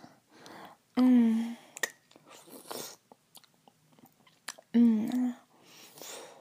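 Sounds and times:
drawn-out low humming vocal sounds: 1.0 - 1.8, 4.7 - 5.5
person chewing and tasting ice: 3.3 - 4.7.

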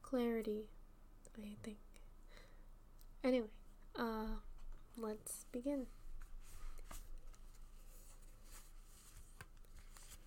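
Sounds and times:
speech: 0.1 - 2.4, 3.2 - 6.0
large cards being shuffled: 6.8 - 10.2.

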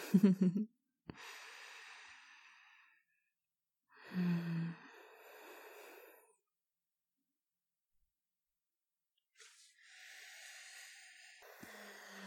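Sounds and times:
close breathing: 1.1 - 3.2, 4.0 - 6.4, 9.4 - 12.2.

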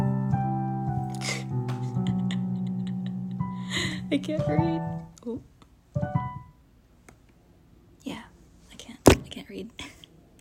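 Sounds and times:
piano: 0.0 - 6.6.

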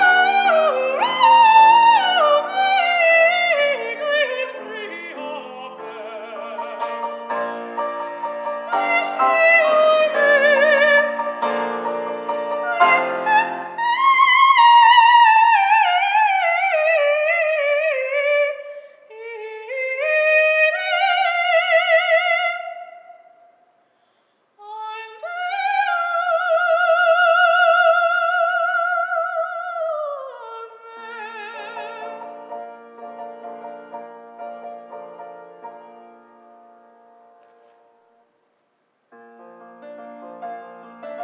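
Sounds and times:
woman singing coloratura opera aria: 0.0 - 7.2, 8.5 - 11.4, 12.4 - 23.4, 24.6 - 32.4.

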